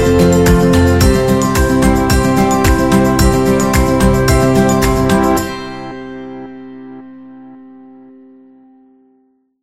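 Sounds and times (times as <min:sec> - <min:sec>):
upbeat acoustic music: 0:00.0 - 0:06.5.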